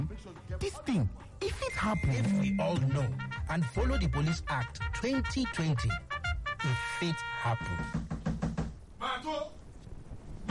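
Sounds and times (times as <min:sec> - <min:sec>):
speech: 0:00.2 - 0:08.0
knocking on a door: 0:07.9 - 0:08.8.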